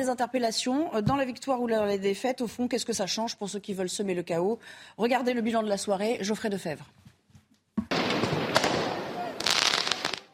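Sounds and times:
speech: 0.0s - 7.1s
firework mortar shots during street riots: 7.9s - 10.3s.

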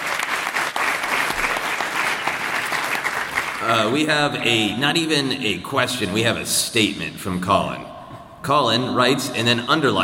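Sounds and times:
crowd applause: 0.0s - 4.7s
speech: 3.6s - 7.9s, 8.5s - 10.0s.

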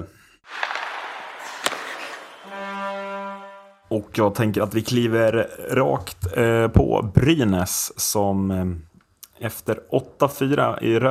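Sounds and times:
radio bumper jingle rushing noise burst: 0.5s - 3.8s
sharp hit: 0.5s - 3.9s
sustained musical chord: 2.5s - 3.9s
speech: 3.9s - 11.0s.

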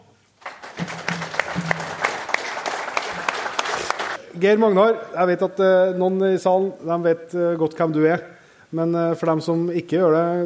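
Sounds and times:
audience applause: 0.4s - 4.2s
speech: 4.4s - 10.4s.

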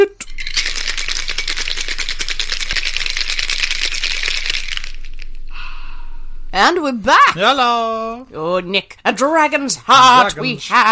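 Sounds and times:
cocktail shaker rattling with ice: 0.2s - 5.4s
speech: 6.6s - 10.9s.

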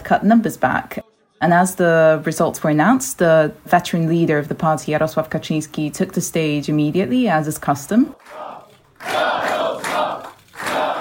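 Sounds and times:
speech: 0.1s - 9.3s
crowd chanting: 8.1s - 10.9s.

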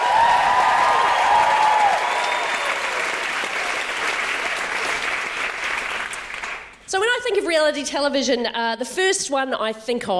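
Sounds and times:
audience whooping for a comedian being introduced on stage: 0.0s - 5.5s
audience clapping for a comedian being introduced on stage: 0.0s - 6.8s
speech: 7.4s - 10.1s.

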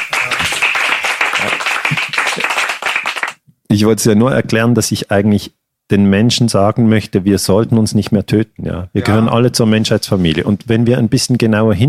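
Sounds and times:
audience applause: 0.0s - 3.4s
speech: 3.7s - 11.8s.

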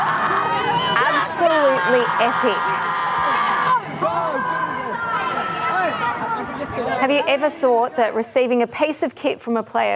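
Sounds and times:
excited chatter: 0.0s - 8.6s
speech: 1.9s - 3.1s, 6.8s - 9.9s.

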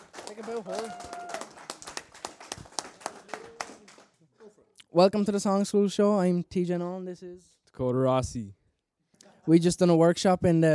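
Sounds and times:
small group applause: 0.0s - 4.2s
speech: 0.4s - 1.2s, 4.9s - 8.6s, 9.5s - 10.7s.

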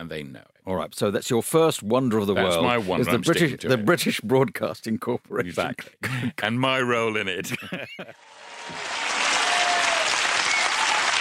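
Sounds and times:
speech: 0.0s - 9.0s
laughter: 7.4s - 8.2s
round of applause: 8.2s - 11.2s.

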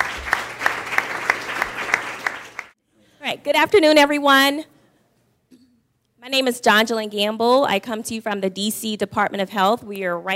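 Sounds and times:
audience applause: 0.0s - 2.8s
speech: 3.4s - 4.7s, 6.2s - 10.3s.

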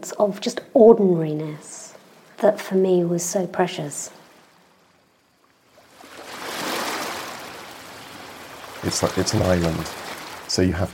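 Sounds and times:
speech: 0.0s - 1.8s, 2.4s - 4.2s, 8.8s - 10.9s
Atlantic breakers crashing on a beach: 6.0s - 10.9s.

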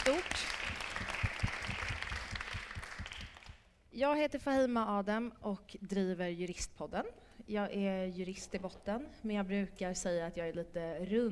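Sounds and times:
audience applause: 0.0s - 3.5s
speech: 4.0s - 11.3s.

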